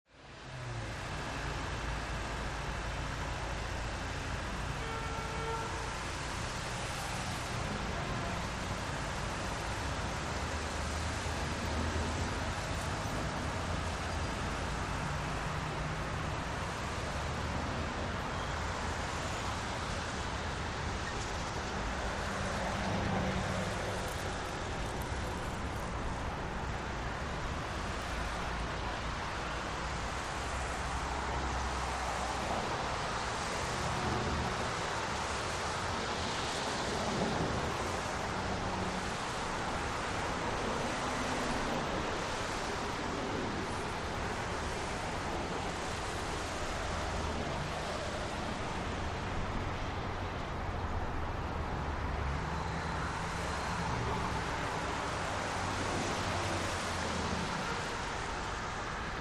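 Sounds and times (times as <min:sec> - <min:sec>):
New York City street ambience: 0:00.1 - 0:59.1.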